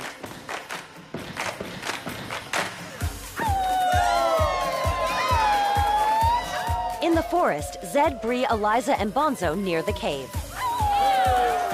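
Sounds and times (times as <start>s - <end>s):
hands clapping in a dance challenge: 0.0s - 3.0s
rhythmic stomping in a dance challenge: 0.0s - 11.7s
speech: 7.1s - 10.4s.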